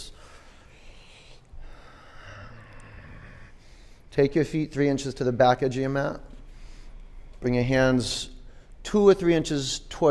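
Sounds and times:
Ujjayi breathing by people in a yoga class: 0.1s - 4.1s, 6.4s - 7.4s
speech: 4.2s - 6.3s, 7.4s - 10.1s.

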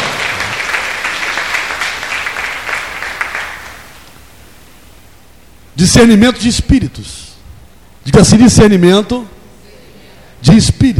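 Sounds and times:
audience applauding: 0.0s - 4.0s
speech: 5.8s - 7.3s, 8.0s - 9.4s, 10.4s - 10.9s.

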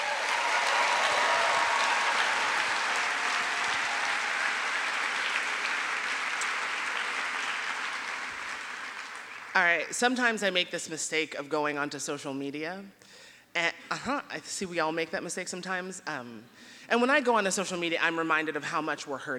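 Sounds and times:
audience round of applause: 0.0s - 9.7s
speech: 9.6s - 19.3s.

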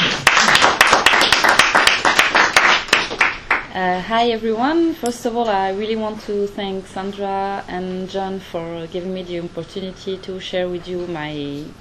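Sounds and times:
audience applause welcoming a speaker at an LSE event on Morocco: 0.0s - 3.6s
speech: 3.8s - 11.8s.

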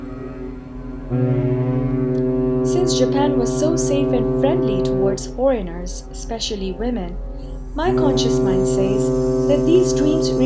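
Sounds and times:
speech: 1.1s - 1.4s, 2.9s - 10.4s
ship horn blowing as it departs: 1.1s - 6.1s, 7.3s - 10.4s.

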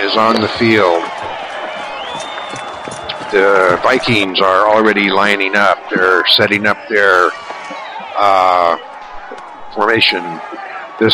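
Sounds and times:
speech: 0.0s - 1.3s, 3.3s - 8.9s, 9.7s - 11.1s
high shouts: 0.0s - 11.1s
large stadium crowd roaring: 0.0s - 11.1s
whistles: 0.2s - 4.1s.

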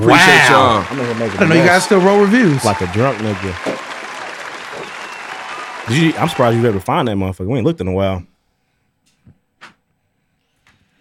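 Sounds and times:
speech: 0.0s - 3.8s, 5.9s - 8.3s
round of applause: 0.0s - 7.1s.

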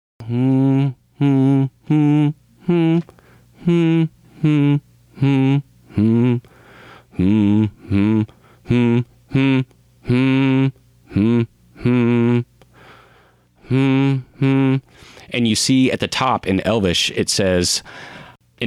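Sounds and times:
person humming a melody: 0.2s - 12.6s, 13.6s - 14.9s
speech: 0.3s - 0.6s, 1.2s - 2.1s, 3.7s - 5.6s, 15.6s - 18.6s.

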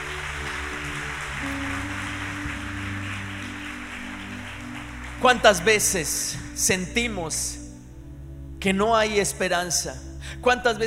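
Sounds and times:
audience applause: 0.0s - 6.0s
speech: 5.2s - 7.6s, 8.6s - 10.8s.

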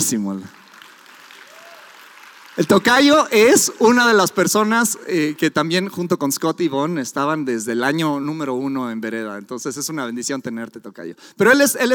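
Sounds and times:
speech: 0.1s - 0.6s, 2.6s - 11.9s
audience applause: 0.1s - 4.2s.

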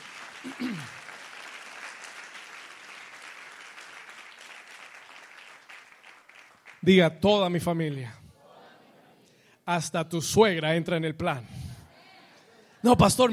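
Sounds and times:
loud crowd applause: 0.0s - 6.9s
speech: 0.4s - 1.0s, 6.8s - 8.2s, 9.7s - 11.6s, 12.8s - 13.3s.

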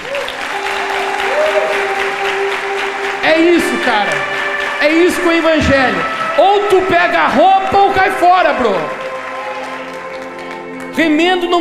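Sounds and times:
audience applause: 0.0s - 11.5s
speech: 3.3s - 9.0s, 11.0s - 11.5s.

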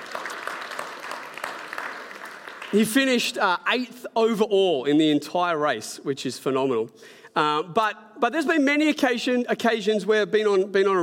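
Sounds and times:
crowd clapping: 0.0s - 3.4s
speech: 2.7s - 11.0s.

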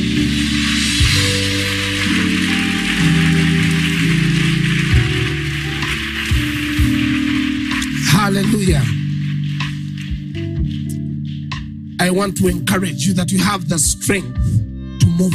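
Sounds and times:
audience clapping: 0.0s - 11.7s
speech: 12.1s - 15.3s.

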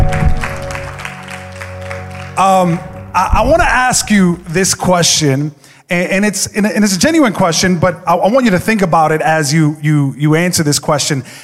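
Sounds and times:
audience clapping: 0.0s - 4.1s
speech: 2.4s - 11.4s.

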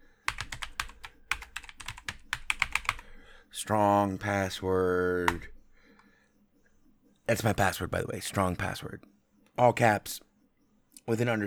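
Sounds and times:
rapid typing on a computer keyboard: 0.3s - 3.2s, 5.3s - 6.1s
speech: 3.6s - 5.6s, 7.3s - 10.3s, 11.1s - 11.4s.

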